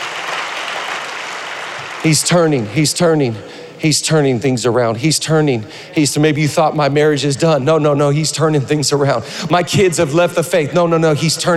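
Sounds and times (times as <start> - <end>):
audience clapping: 0.0 - 2.4
speech: 2.0 - 11.5.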